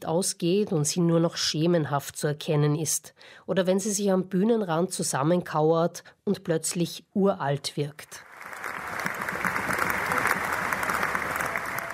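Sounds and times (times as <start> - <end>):
speech: 0.0 - 9.2
audience applause and cheering after performance: 8.2 - 11.9.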